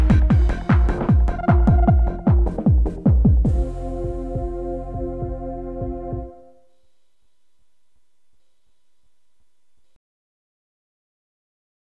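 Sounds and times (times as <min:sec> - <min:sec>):
eurobeat music: 0:00.0 - 0:06.8.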